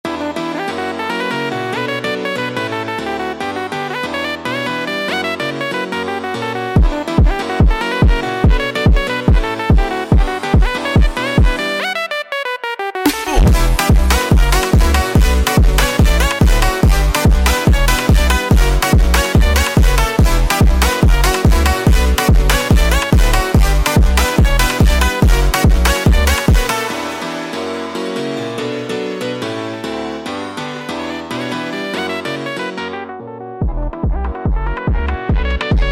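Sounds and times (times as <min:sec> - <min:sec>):
sped up funk music: 0:00.1 - 0:35.9.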